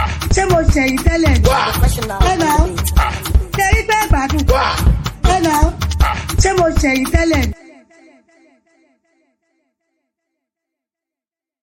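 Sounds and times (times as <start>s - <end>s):
professional music beat: 0.0s - 7.6s.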